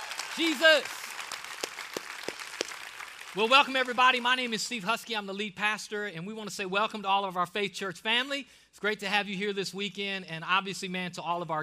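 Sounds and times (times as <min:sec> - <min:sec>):
audience clapping: 0:00.0 - 0:04.8
speech: 0:00.4 - 0:01.0, 0:03.4 - 0:11.6.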